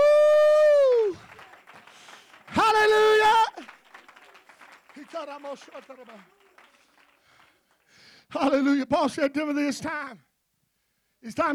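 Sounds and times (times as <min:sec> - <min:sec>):
audience clapping hands: 0:00.0 - 0:08.5
speech: 0:05.2 - 0:06.4, 0:08.3 - 0:10.3, 0:11.2 - 0:11.5.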